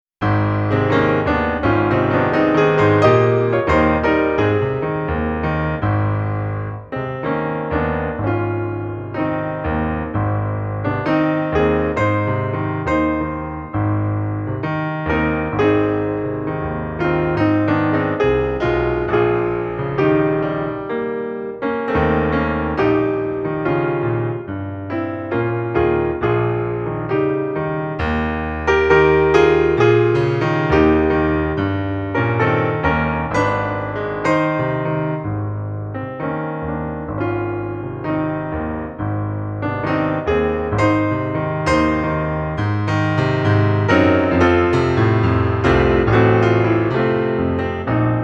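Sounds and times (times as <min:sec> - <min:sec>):
solo piano: 0:00.1 - 0:48.2.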